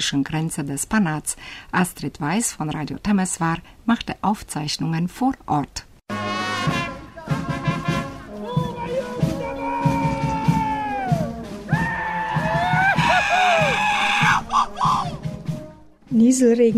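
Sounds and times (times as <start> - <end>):
speech: 0.0 - 5.9, 16.1 - 16.7
brass band music: 6.1 - 13.8, 15.1 - 16.0
festive whooping cries at a village fair: 8.5 - 15.2.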